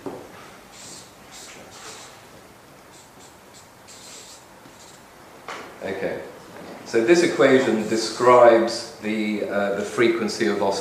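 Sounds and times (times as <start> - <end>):
scratchy strokes of a lecturer writing down an equation: 0.7 - 2.2, 2.9 - 5.0
speech: 5.8 - 6.3, 6.9 - 10.7.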